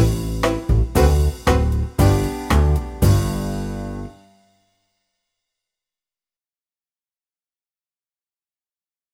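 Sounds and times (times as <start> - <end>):
rhythm section playing: 0.0 - 4.1.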